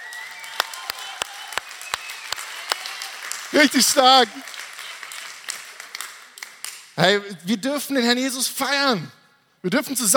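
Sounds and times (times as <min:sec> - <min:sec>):
audience cheering: 0:00.0 - 0:06.2
large crowd applause: 0:00.0 - 0:06.8
speech: 0:03.5 - 0:04.5, 0:07.0 - 0:10.1.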